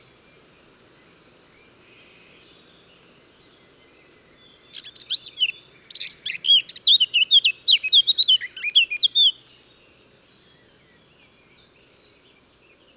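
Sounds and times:
Eurasian blackcap (Sylvia atricapilla) singing: 4.7s - 9.4s.

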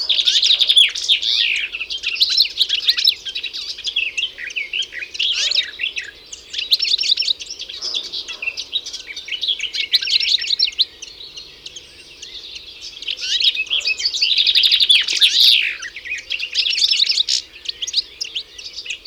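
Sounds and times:
European goldfinch song, Carduelis carduelis: 0.0s - 19.0s.

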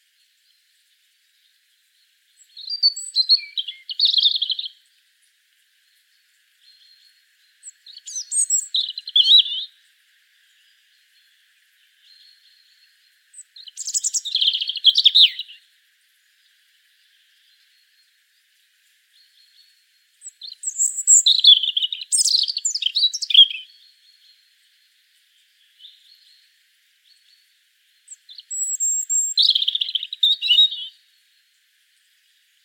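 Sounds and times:
European robin singing: 2.0s - 4.9s, 5.9s - 15.7s, 19.1s - 31.2s.

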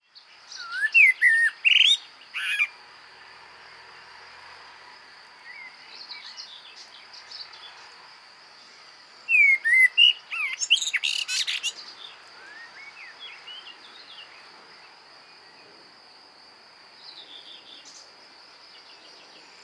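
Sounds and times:
common blackbird song: 0.0s - 2.8s, 5.4s - 8.0s, 8.6s - 15.7s, 17.0s - 19.6s.

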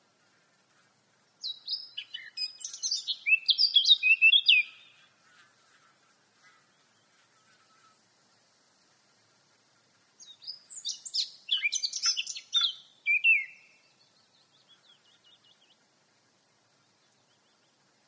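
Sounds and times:
Eurasian blackcap warbling song: 1.4s - 5.0s, 10.2s - 15.8s.

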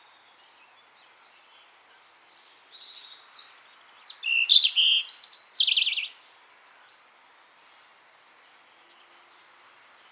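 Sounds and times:
European robin Erithacus rubecula singing: 1.4s - 6.2s.

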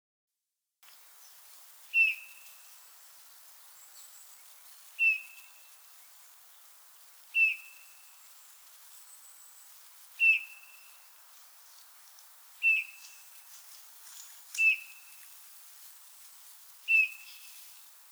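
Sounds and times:
Eurasian bullfinch Pyrrhula pyrrhula piping calls: 0.9s - 11.7s, 12.3s - 13.4s, 14.5s - 15.2s, 16.9s - 17.6s.

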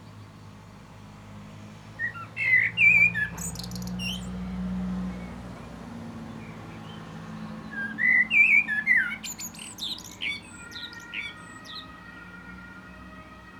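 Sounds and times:
common blackbird Turdus merula whistled warbling song with shrill twitters: 2.0s - 4.3s, 7.7s - 11.8s.

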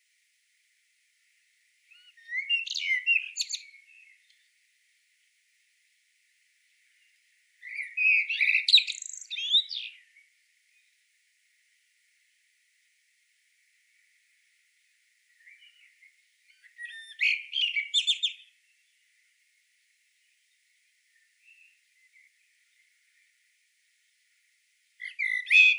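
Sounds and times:
common blackbird singing: 1.9s - 4.5s, 7.6s - 10.9s, 15.3s - 18.6s, 25.0s - 25.7s.

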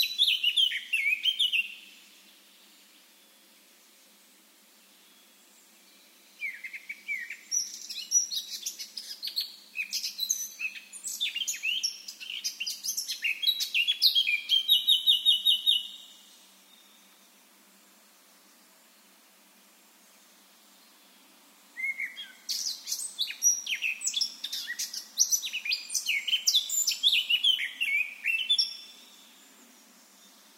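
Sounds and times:
Eurasian blackcap song: 0.0s - 2.0s, 5.0s - 17.2s, 21.8s - 30.5s.

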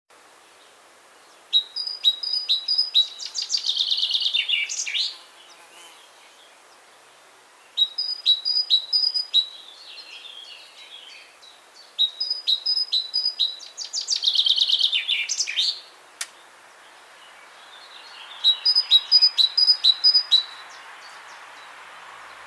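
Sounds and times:
great tit calls: 1.4s - 6.4s, 7.7s - 16.3s, 17.6s - 21.4s.

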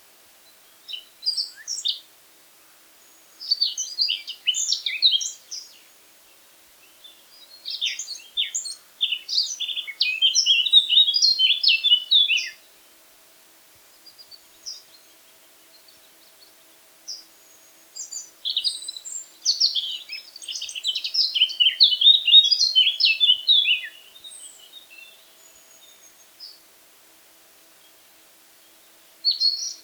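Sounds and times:
Eurasian blackcap warbling song: 3.4s - 5.9s, 6.9s - 12.6s, 18.0s - 26.6s, 29.2s - 29.8s.

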